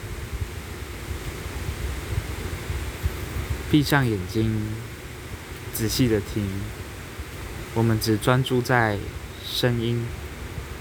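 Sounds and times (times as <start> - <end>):
rain falling: 0.1 - 10.7
speech: 3.7 - 4.9, 5.8 - 6.8, 7.7 - 10.2.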